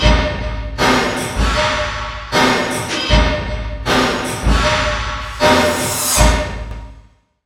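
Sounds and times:
industrial loop: 0.0s - 7.0s.

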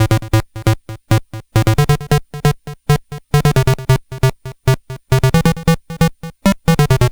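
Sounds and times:
Game Boy bass effect: 1.6s - 7.1s.

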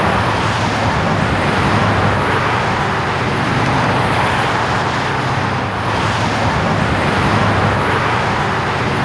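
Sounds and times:
Highway 1 traffic: 0.0s - 9.0s.

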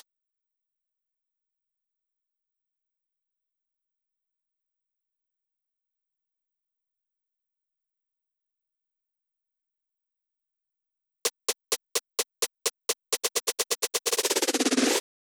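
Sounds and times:
drum loop with snare at 128 BPM: 11.2s - 15.0s.

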